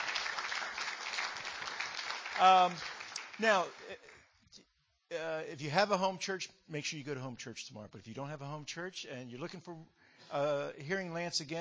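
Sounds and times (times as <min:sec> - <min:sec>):
audience applause: 0:00.0 - 0:04.2
speech: 0:02.4 - 0:11.6.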